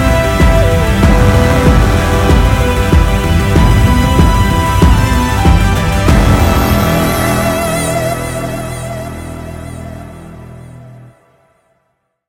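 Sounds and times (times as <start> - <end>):
main menu music: 0.0 - 9.4.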